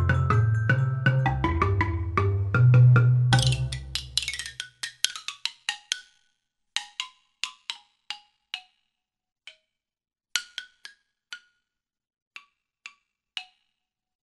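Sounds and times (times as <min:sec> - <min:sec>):
bar percussion collage: 0:00.0 - 0:04.7.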